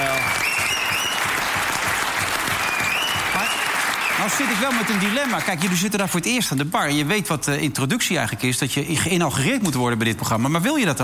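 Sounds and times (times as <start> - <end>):
audience applause: 0.0 - 6.1
speech: 4.3 - 11.0.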